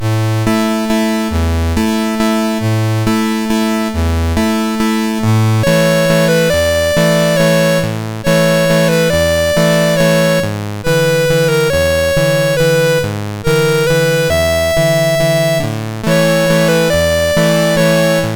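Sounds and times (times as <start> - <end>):
ballet waltz on MOS6581R2 SID chip: 0.0 - 18.3.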